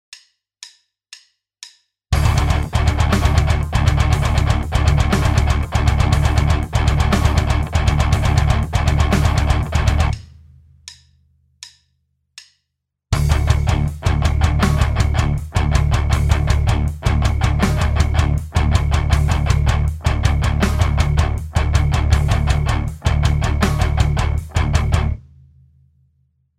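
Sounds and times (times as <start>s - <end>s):
rhythm: 2.2s - 10.3s, 13.2s - 25.2s.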